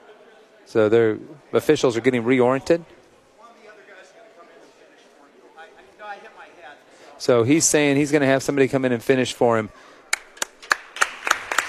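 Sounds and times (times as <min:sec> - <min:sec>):
speech: 0:00.7 - 0:03.0, 0:07.2 - 0:09.9
sharp applause claps: 0:10.1 - 0:11.6.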